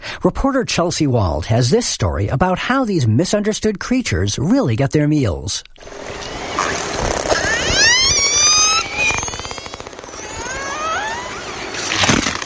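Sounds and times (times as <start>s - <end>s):
speech: 0.2s - 6.3s
Icelandic killer whale hunting sounds: 6.0s - 12.4s.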